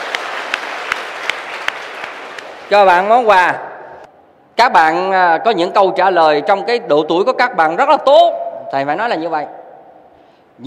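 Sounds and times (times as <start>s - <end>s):
audience applause at a Buddhist dharma talk: 0.0s - 2.7s
speech: 2.7s - 3.7s, 4.6s - 9.6s.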